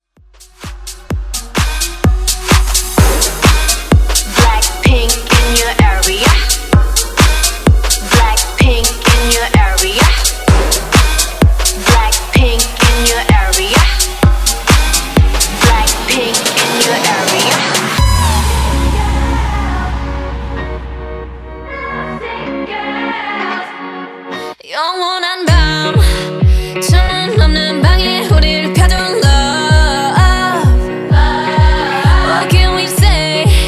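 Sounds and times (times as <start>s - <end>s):
bass house music: 0.0s - 22.9s, 25.5s - 33.6s.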